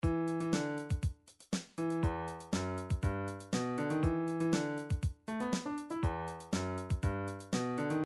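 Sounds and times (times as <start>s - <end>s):
MIDI funk music: 0.0s - 8.0s.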